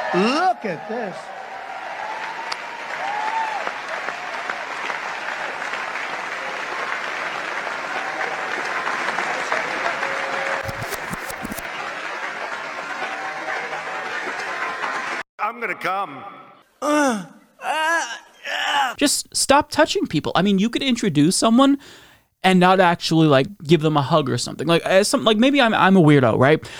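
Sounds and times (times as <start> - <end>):
audience applause: 0.0 - 15.2
speech: 0.1 - 1.4, 15.6 - 17.3, 19.0 - 26.7.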